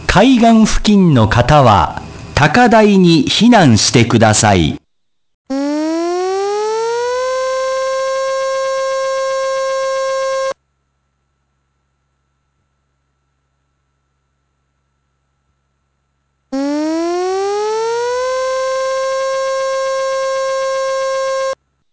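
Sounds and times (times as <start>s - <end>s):
speech: 0.1s - 4.8s
tsunami warning civil defense siren wailing: 5.5s - 10.6s, 16.6s - 21.6s.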